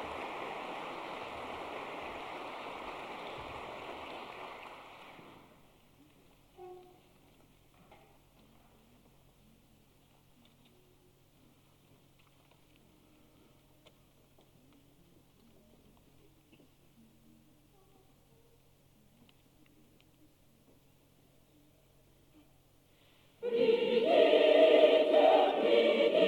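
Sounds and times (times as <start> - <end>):
symphonic choir: 23.4 - 26.2.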